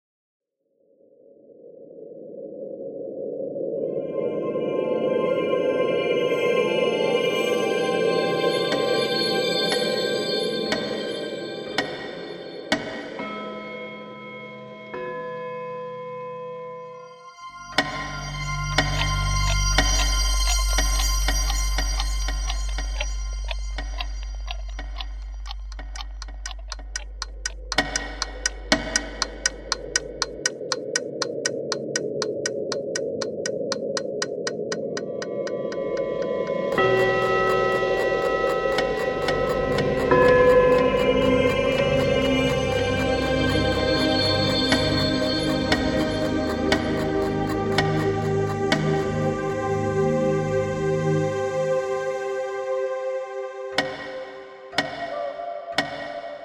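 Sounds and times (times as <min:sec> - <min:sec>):
abstract Paris ambience: 0:00.8 - 0:56.4.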